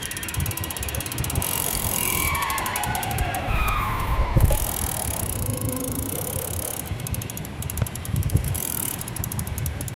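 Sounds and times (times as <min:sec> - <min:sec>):
fast bike wheels spinning: 0:00.0 - 0:09.9.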